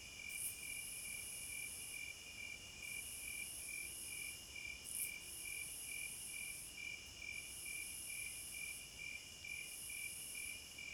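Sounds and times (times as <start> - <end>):
crickets chirping at midnight: 0.0 - 10.9.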